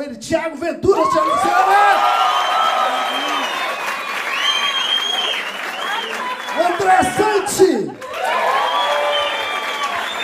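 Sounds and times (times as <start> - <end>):
speech: 0.0 - 1.8, 6.9 - 8.0
shouted cheers: 1.0 - 10.2
audience applause: 1.2 - 10.2
whistles: 2.3 - 6.9, 8.5 - 10.2.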